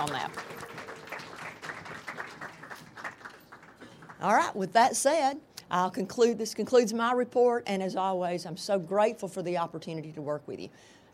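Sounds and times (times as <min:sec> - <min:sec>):
speech: 0:00.0 - 0:00.5, 0:04.2 - 0:11.0
audience applause: 0:00.0 - 0:04.2.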